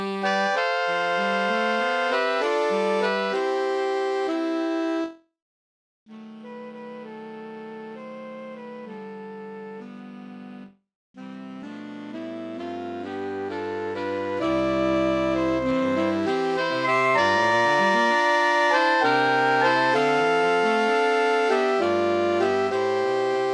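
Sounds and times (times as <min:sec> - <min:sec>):
MIDI music: 0:00.0 - 0:04.5, 0:12.6 - 0:23.4.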